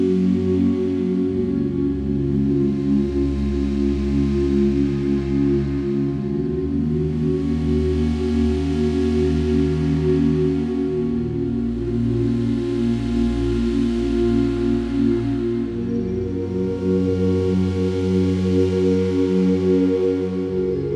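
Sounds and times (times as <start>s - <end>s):
summer rain melody background music for meditation and yoga: 0.0s - 20.9s.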